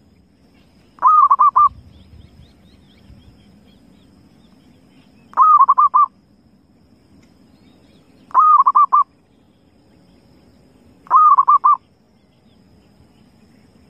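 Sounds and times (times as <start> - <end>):
zebra dove cooing: 1.0 - 1.8, 5.4 - 6.1, 8.3 - 9.1, 11.1 - 11.8.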